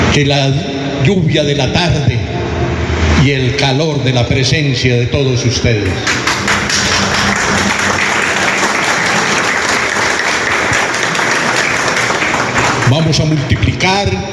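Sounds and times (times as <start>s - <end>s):
speech: 0.2s - 2.2s, 3.2s - 6.4s, 12.9s - 14.3s
large crowd applause: 5.9s - 13.4s.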